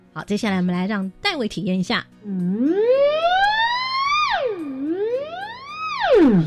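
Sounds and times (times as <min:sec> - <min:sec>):
speech: 0:00.2 - 0:03.1, 0:06.3 - 0:06.4
gliding electronic siren-like tone: 0:02.3 - 0:06.4.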